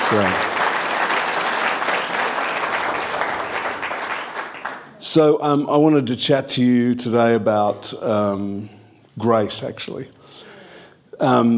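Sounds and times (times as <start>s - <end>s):
audience clapping: 0.0s - 5.0s
speech: 0.1s - 0.5s, 5.0s - 10.5s, 11.2s - 11.5s.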